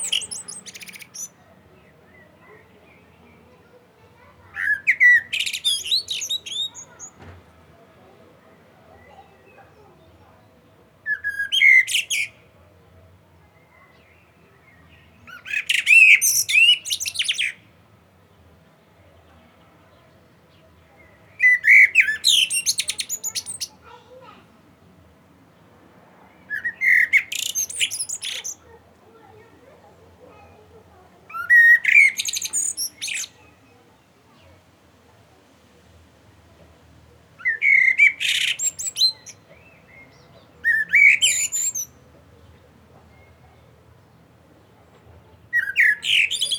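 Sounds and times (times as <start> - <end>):
common blackbird song: 0.0 - 3.4, 4.4 - 7.2, 11.1 - 12.4, 13.6 - 17.6, 21.0 - 24.4, 26.5 - 28.8, 29.4 - 34.5, 37.4 - 44.1, 45.4 - 46.5.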